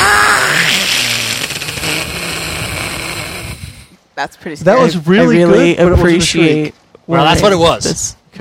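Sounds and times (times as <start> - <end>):
person imitating a creature's fierce loud hissing shriek: 0.0 - 4.0
speech: 4.2 - 8.2.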